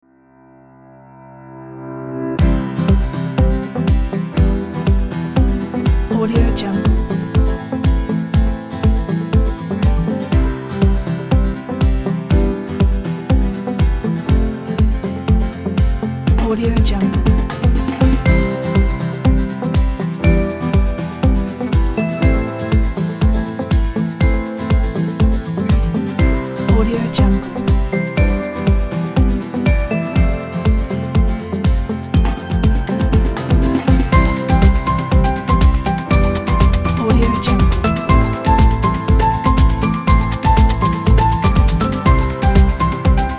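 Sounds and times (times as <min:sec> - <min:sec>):
uplifting inspiring summer music: 0:02.4 - 0:43.3.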